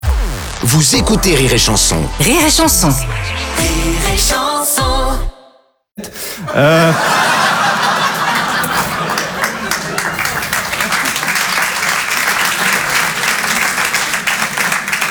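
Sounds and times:
speech: 0:00.6 - 0:05.3, 0:06.0 - 0:07.3
audience chuckles and laughter: 0:06.0 - 0:14.4
audience applause: 0:06.5 - 0:15.0.

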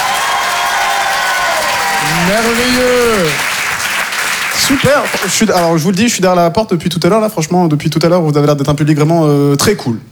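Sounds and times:
crowd cheering and whooping: 0:00.0 - 0:04.6
crowd applauding: 0:00.0 - 0:05.9
speech: 0:02.2 - 0:03.5, 0:04.6 - 0:10.0.

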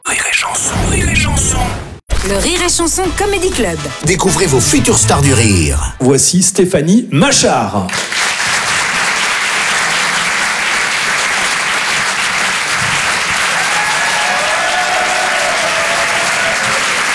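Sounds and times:
speech: 0:00.4 - 0:08.3
audience applause: 0:07.9 - 0:17.1.

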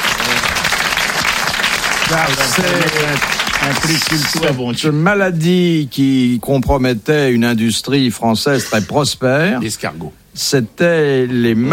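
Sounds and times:
audience applauding loudly: 0:00.0 - 0:04.6
speech: 0:02.1 - 0:11.7.

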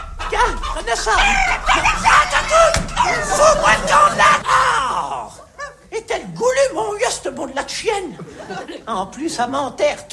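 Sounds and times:
flock of hens clucking and squawking: 0:00.0 - 0:04.6
laughter: 0:00.0 - 0:04.8, 0:08.0 - 0:09.2
speech: 0:00.4 - 0:05.2, 0:06.5 - 0:10.1.

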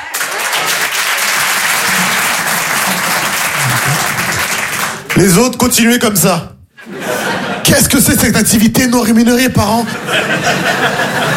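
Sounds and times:
audience applause: 0:00.0 - 0:05.4
laughter: 0:00.1 - 0:04.8, 0:06.8 - 0:08.2, 0:09.8 - 0:11.3
speech: 0:05.2 - 0:06.6, 0:07.6 - 0:11.3.

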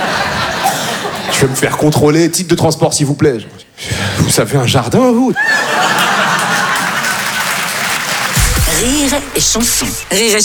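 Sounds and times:
people chuckling: 0:00.0 - 0:01.5, 0:05.4 - 0:07.9
speech: 0:01.4 - 0:06.3, 0:08.8 - 0:10.4
live audience applauding: 0:05.5 - 0:10.4.

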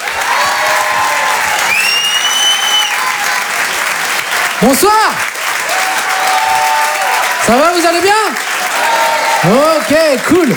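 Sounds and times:
comedy club audience clapping: 0:00.0 - 0:10.5
high whistle: 0:01.6 - 0:03.1
speech: 0:04.6 - 0:05.3, 0:07.4 - 0:08.5, 0:09.4 - 0:10.5.

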